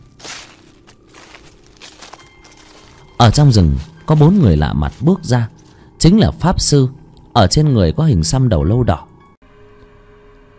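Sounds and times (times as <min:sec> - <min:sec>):
footsteps approaching: 0:00.0 - 0:05.9
speech: 0:03.2 - 0:09.1.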